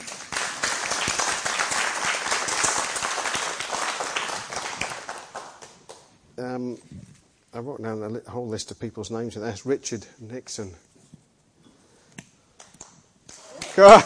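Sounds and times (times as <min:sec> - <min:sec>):
hand clapping: 0:00.0 - 0:06.1
speech: 0:06.5 - 0:10.9, 0:13.8 - 0:14.0.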